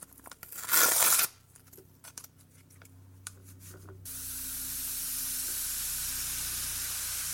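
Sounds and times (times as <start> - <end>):
hot water poured over baking powder, fizzing: 4.1 - 7.3.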